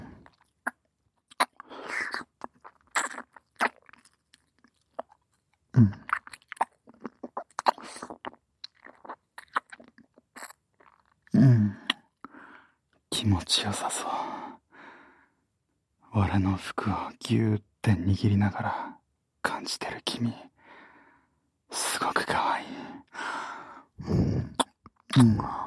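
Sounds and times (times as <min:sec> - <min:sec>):
wet tongue licking and rubbing mouth sounds in ASMR style: 0:00.2 - 0:05.2, 0:06.0 - 0:12.0
speech: 0:05.8 - 0:06.0, 0:13.2 - 0:14.4, 0:16.2 - 0:18.9, 0:19.6 - 0:20.4, 0:22.0 - 0:22.8, 0:25.2 - 0:25.6.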